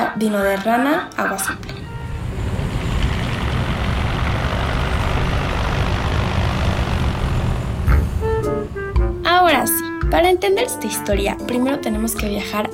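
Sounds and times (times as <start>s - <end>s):
speech: 0.2s - 1.7s, 9.5s - 12.7s
airplane engine drone during takeoff: 1.0s - 10.5s.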